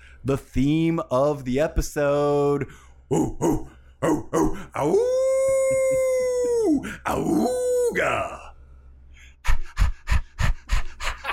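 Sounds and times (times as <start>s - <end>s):
speech: 0.2s - 5.8s, 6.7s - 8.4s
person imitating a dog panting: 3.1s - 4.9s, 9.4s - 11.3s.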